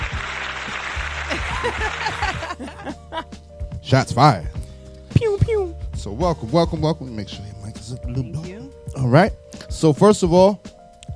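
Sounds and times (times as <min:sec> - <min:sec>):
crowd clapping: 0:00.0 - 0:03.2
scattered voices and laughter: 0:01.2 - 0:03.3
speech: 0:01.6 - 0:04.6, 0:05.2 - 0:10.7.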